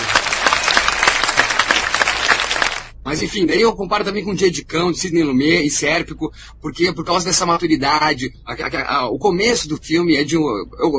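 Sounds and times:
applause: 0.0 - 2.9
speech: 3.1 - 10.9.

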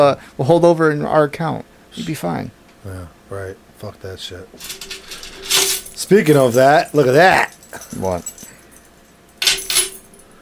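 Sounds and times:
speech: 0.0 - 8.4
keys on a keychain jangling: 4.6 - 10.4.

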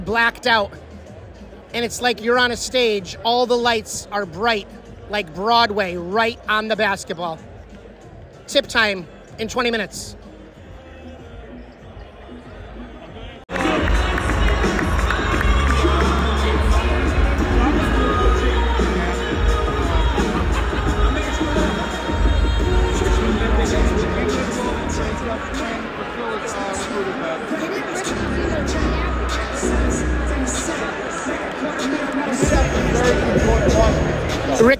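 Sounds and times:
speech: 0.0 - 0.8, 1.7 - 7.5, 8.5 - 10.2
arena crowd cheering and booing: 11.0 - 34.7.

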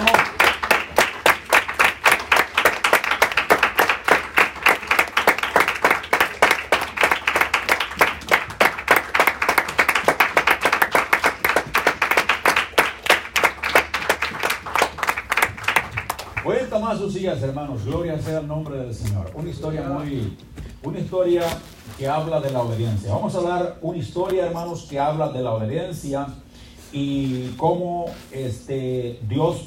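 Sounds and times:
audience applause: 0.0 - 16.5
speech: 16.9 - 26.4, 27.0 - 29.6.

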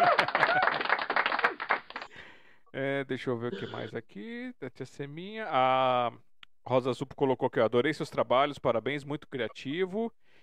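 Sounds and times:
hand clapping: 0.0 - 2.1
speech: 3.0 - 10.2.

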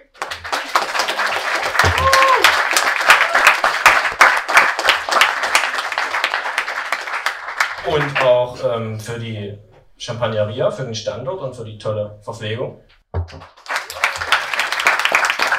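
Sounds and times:
audience applause: 0.0 - 8.5, 13.4 - 15.5
speech: 7.9 - 13.6.

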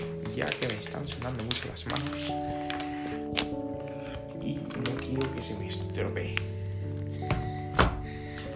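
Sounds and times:
wrapping braille display in plastic bag: 0.0 - 8.5
speech: 0.4 - 3.6, 4.4 - 6.6.

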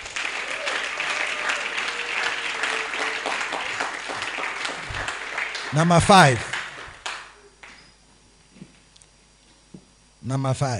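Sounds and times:
audience clapping hands: 0.0 - 7.8
speech: 5.7 - 6.5, 10.3 - 10.7.

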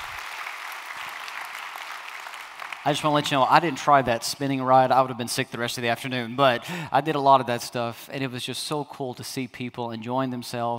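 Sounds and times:
audience clapping: 0.0 - 4.1
speech: 2.8 - 10.7.

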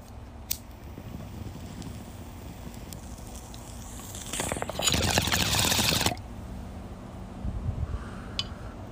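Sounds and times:
low rumble of traffic: 0.0 - 8.9
bong hit bubbling through water pipe: 4.0 - 6.2.

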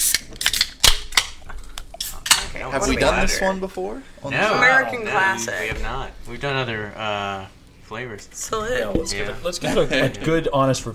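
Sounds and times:
energy drink can being cracked open: 0.0 - 1.4
speech: 2.6 - 10.9.

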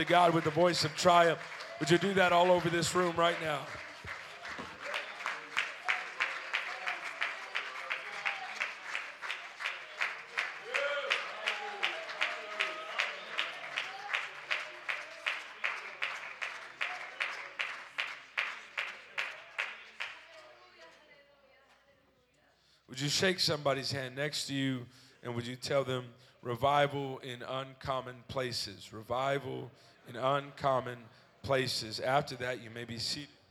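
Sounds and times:
speech: 0.0 - 3.8, 23.0 - 33.4
audience clapping hands: 0.0 - 21.0.

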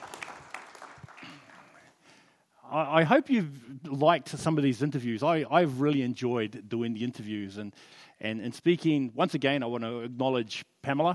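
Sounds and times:
audience applause: 0.0 - 2.0
speech: 2.7 - 11.1.

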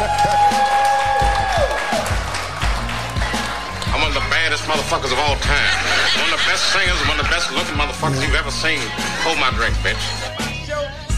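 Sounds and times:
small group clapping: 0.0 - 6.4
laughter: 4.7 - 10.3
speech: 4.9 - 10.4.

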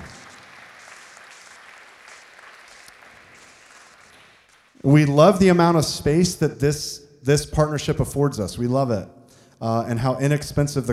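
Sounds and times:
audience applause: 0.0 - 4.7
speech: 4.8 - 10.9.

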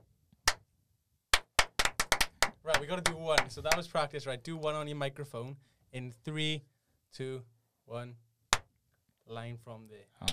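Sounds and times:
hand clap for audio sync: 0.4 - 0.6, 1.3 - 3.9
speech: 2.7 - 8.2, 9.3 - 10.3.

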